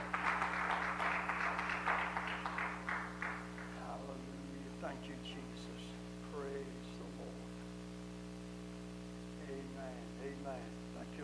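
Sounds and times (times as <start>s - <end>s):
church congregation clapping hands in praise during a worship service: 0.0s - 3.8s
low electrical hum: 0.0s - 11.2s.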